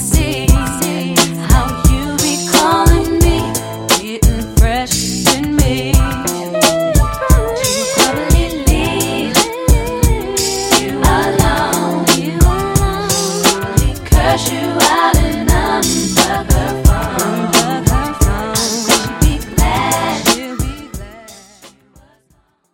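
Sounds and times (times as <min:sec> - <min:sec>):
90s RB club drum beat: 0:00.0 - 0:21.7.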